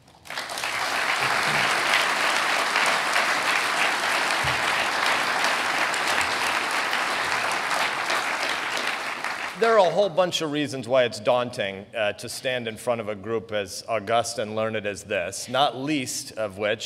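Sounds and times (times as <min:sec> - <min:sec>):
crowd applauding: 0:00.0 - 0:10.0
speech: 0:09.6 - 0:16.8.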